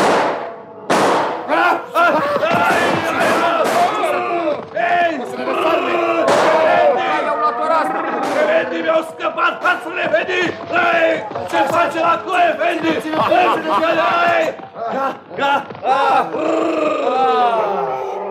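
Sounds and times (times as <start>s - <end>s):
pistol gunshots in a fight: 0.0s - 1.5s, 2.6s - 4.2s, 6.2s - 7.0s, 8.2s - 8.6s
laughter: 1.5s - 10.8s, 11.4s - 18.2s.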